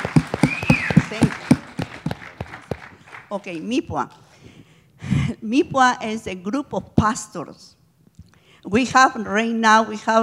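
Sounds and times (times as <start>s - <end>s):
audience applause: 0.0s - 3.3s
speech: 3.3s - 4.2s, 5.3s - 7.8s, 8.6s - 10.2s.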